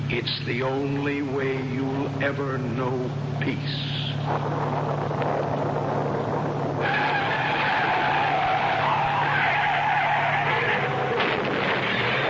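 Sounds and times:
speech: 0:00.1 - 0:07.1
car tires skidding on road: 0:04.3 - 0:12.2.

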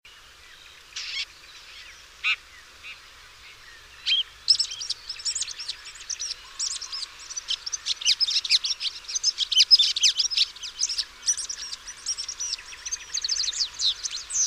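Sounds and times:
bird twittering: 0:04.0 - 0:14.4.

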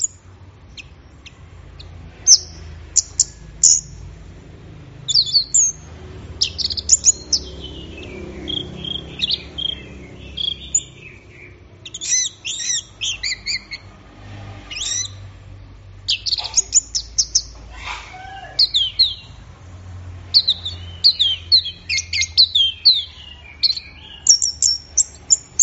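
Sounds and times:
orange-headed thrush singing whistles and slurs: 0:02.3 - 0:04.0, 0:05.1 - 0:05.8, 0:06.4 - 0:13.8, 0:14.7 - 0:15.2, 0:16.1 - 0:19.3, 0:20.3 - 0:25.6.

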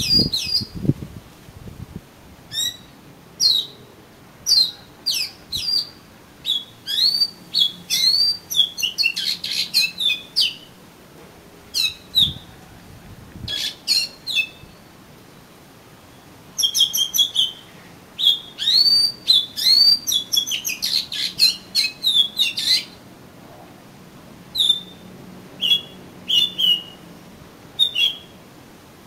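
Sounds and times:
Oriental magpie-robin singing: 0:00.0 - 0:00.8, 0:02.5 - 0:10.7, 0:11.7 - 0:12.5, 0:13.4 - 0:23.0, 0:24.5 - 0:27.0, 0:27.8 - 0:28.4.

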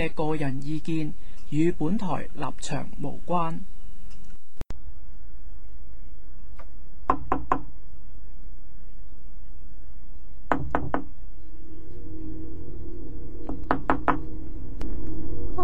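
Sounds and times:
speech: 0:00.0 - 0:03.7
quiet hum: 0:00.0 - 0:15.6
knocking on a door at night: 0:07.1 - 0:07.7, 0:10.5 - 0:11.2.

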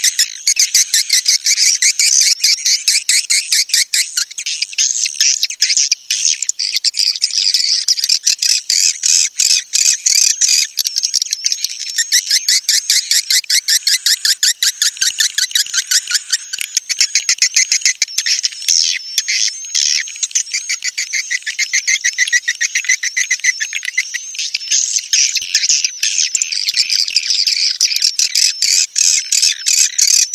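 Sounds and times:
swiftlets chirping: 0:00.0 - 0:30.3.

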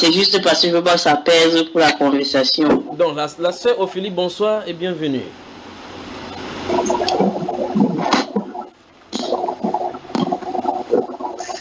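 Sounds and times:
speech: 0:00.0 - 0:05.5
tap water running in a religious sister's home: 0:06.6 - 0:11.5.

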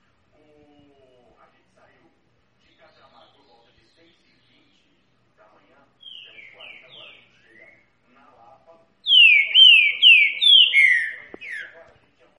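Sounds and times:
green-winged saltator song of slurred whistles: 0:09.1 - 0:11.8.

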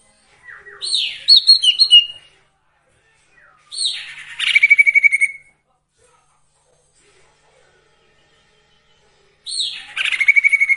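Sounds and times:
song with buzz and trill: 0:00.4 - 0:02.2, 0:03.4 - 0:05.4, 0:09.5 - 0:10.7.

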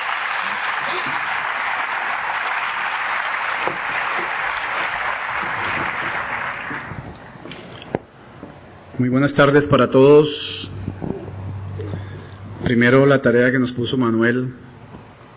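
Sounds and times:
conference audience applauding to welcome a doctor as speaker: 0:00.0 - 0:07.1
speech: 0:09.0 - 0:10.7, 0:12.7 - 0:14.6.

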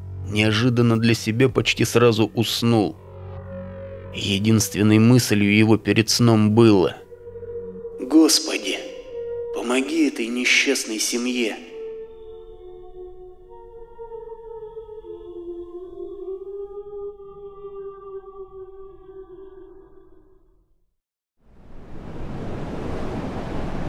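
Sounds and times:
wavering tonal drone: 0:00.0 - 0:20.4
speech: 0:00.3 - 0:03.0, 0:04.1 - 0:07.0, 0:08.2 - 0:08.8, 0:09.7 - 0:11.7.

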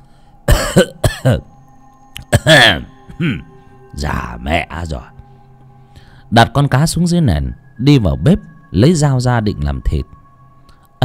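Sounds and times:
voice imitating an old man's hacking cough behind a house near a well: 0:00.5 - 0:01.5, 0:02.2 - 0:03.5
speech: 0:00.8 - 0:01.5, 0:02.2 - 0:05.2, 0:06.3 - 0:10.2.

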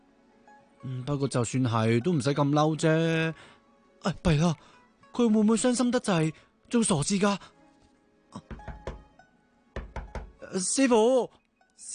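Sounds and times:
speech: 0:00.8 - 0:07.6, 0:10.5 - 0:11.9
knocking on a closed door: 0:08.4 - 0:09.1, 0:09.7 - 0:10.4.

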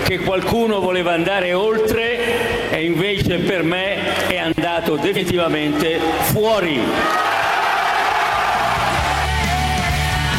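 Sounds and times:
speech: 0:00.1 - 0:07.3
political supporters cheering and whooping as a crowd: 0:06.8 - 0:10.3.

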